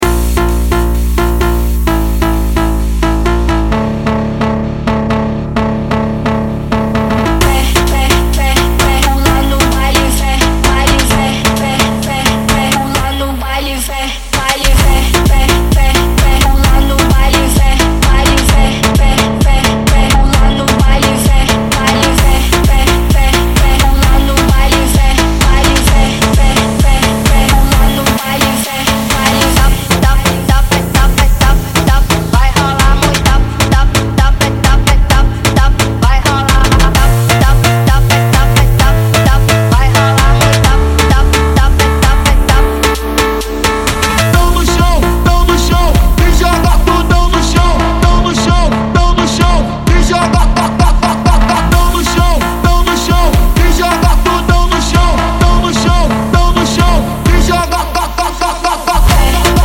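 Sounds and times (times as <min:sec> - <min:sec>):
montagem phonk music: 0:00.0 - 0:59.6.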